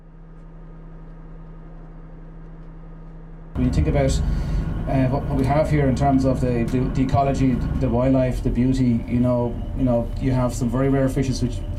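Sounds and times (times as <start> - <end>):
boat engine humming while sailing down the river: 1.3 - 11.7
speech: 3.6 - 11.7.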